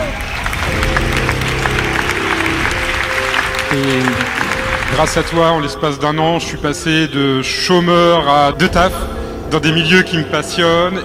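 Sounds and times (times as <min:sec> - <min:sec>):
audience applause: 0:00.0 - 0:05.8
speech: 0:03.8 - 0:04.2, 0:04.9 - 0:11.0.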